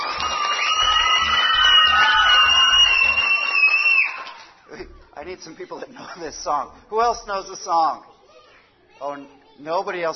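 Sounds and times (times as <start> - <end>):
round of applause: 0.0 - 4.7
people cheering: 0.0 - 4.9
speech: 5.4 - 8.1, 9.0 - 10.1.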